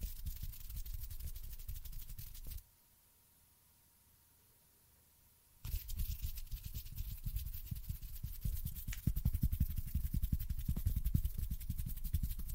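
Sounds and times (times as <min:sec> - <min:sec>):
fingers tapping and brushing: 0:00.0 - 0:02.6, 0:05.6 - 0:12.5.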